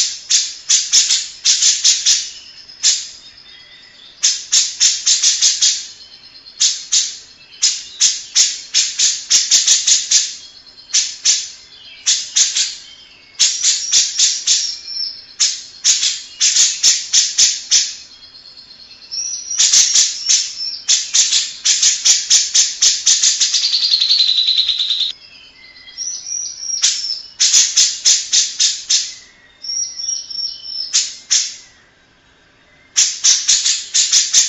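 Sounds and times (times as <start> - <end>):
grey-cheeked bulbul calling: 0.0 - 34.4.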